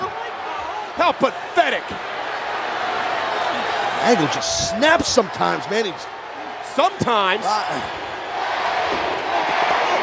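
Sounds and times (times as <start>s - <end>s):
wrestling crowd chanting: 0.0s - 10.0s
speech: 1.0s - 2.1s, 4.0s - 6.2s, 6.8s - 8.0s.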